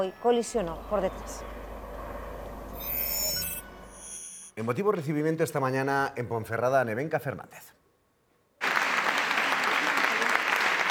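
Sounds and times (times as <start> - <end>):
speech: 0.0 - 1.6, 4.6 - 7.8
long applause: 8.6 - 10.9.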